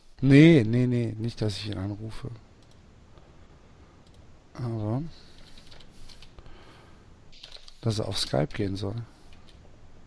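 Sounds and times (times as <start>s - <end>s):
speech: 0.2s - 2.5s, 4.6s - 5.3s, 7.8s - 9.2s
someone typing a message on a computer keyboard: 5.4s - 6.3s, 7.4s - 7.8s.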